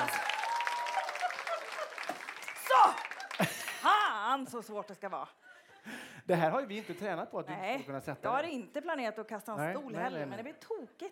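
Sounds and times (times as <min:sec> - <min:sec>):
voices shouting and cheering: 0:00.0 - 0:03.3
crowd applauding: 0:00.0 - 0:04.0
speech: 0:04.4 - 0:11.1.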